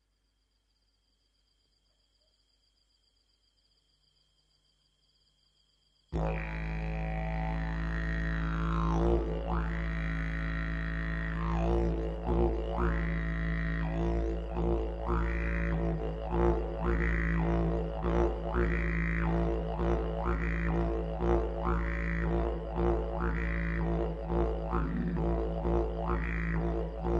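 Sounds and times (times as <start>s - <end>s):
didgeridoo: 6.2s - 27.1s.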